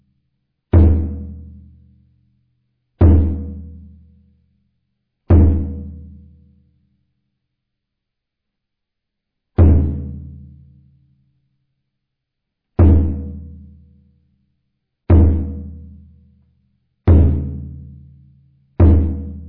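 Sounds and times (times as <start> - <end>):
Kyokushin drum: 0.8 - 1.6, 3.0 - 3.9, 5.3 - 6.2, 9.6 - 10.5, 12.8 - 13.6, 15.1 - 15.9, 17.1 - 18.0, 18.8 - 19.4.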